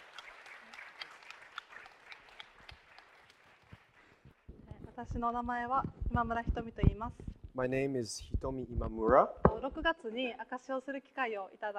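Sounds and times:
group applause of encouragement: 0.0 - 4.6
speech: 5.0 - 11.7.

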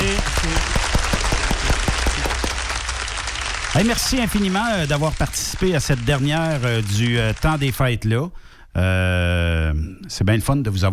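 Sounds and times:
studio audience applause: 0.0 - 8.0
speech: 3.8 - 10.9.

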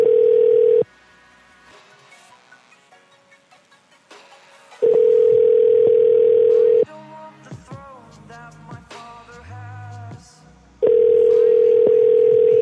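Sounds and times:
telephone ringback tone on an unanswered outgoing call: 0.0 - 0.9, 4.8 - 6.9, 10.8 - 12.6.

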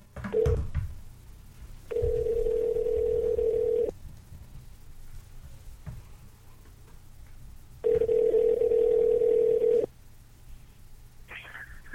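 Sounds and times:
low hiss: 0.0 - 11.9
ringback tone on an outgoing phone call: 1.9 - 3.9, 7.8 - 9.9.

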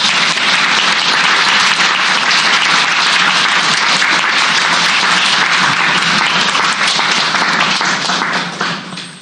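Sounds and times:
audience applause: 0.0 - 9.2.

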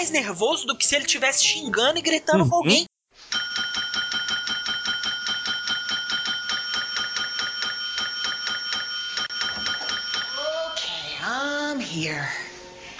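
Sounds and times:
speech: 0.0 - 2.9, 11.8 - 12.4
small hand bell ringing: 3.4 - 10.8.

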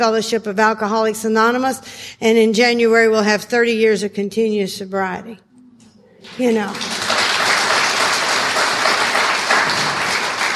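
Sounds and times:
speech: 0.0 - 5.5, 6.2 - 7.0
audience applause: 6.2 - 10.5.

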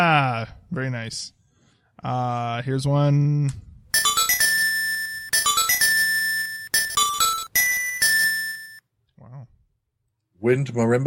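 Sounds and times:
speech: 0.0 - 1.4, 2.0 - 3.7, 10.4 - 11.0
sea lily's bell: 4.0 - 8.8.

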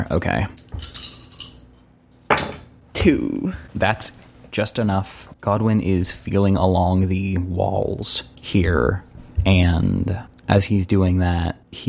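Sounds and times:
speech: 0.0 - 0.9, 3.0 - 11.8
dice rattling on hard surface: 0.6 - 1.8.

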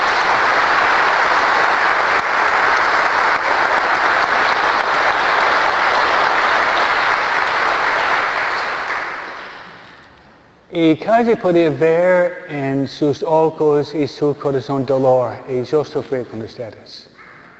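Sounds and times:
large crowd applauding: 0.0 - 10.2
speech: 10.8 - 17.1.

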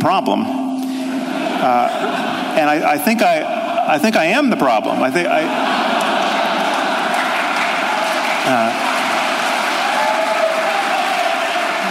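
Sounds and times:
speech: 0.0 - 0.7, 1.4 - 5.8, 8.4 - 8.9
laughter: 0.9 - 9.9
audience applause: 5.4 - 11.8.

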